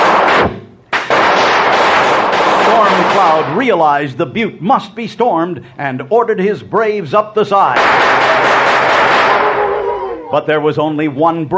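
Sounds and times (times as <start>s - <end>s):
rifle fire in a radio western drama: 0.0s - 3.8s, 7.7s - 9.8s
speech: 3.1s - 9.0s, 10.3s - 11.5s.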